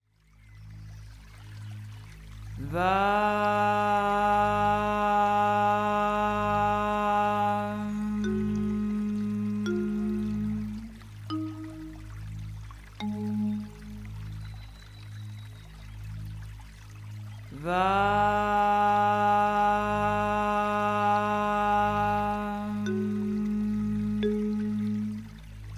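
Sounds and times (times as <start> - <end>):
sacral chakra mantra chanting: 2.6 - 11.0, 17.5 - 25.2.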